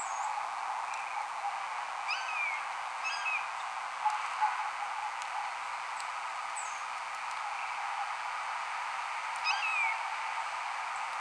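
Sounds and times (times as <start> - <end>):
steady hiss: 0.0 - 11.1
blue jay giving hawk-like screams: 2.1 - 3.5, 9.4 - 10.0.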